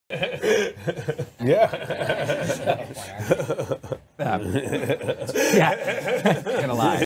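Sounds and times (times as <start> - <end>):
laughing: 0.1 - 7.0.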